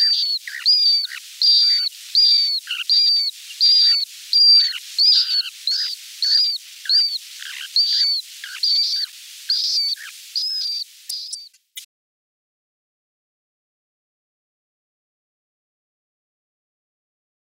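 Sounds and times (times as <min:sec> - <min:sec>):
European golden plover calling plaintive level whistles: 0:00.0 - 0:11.6.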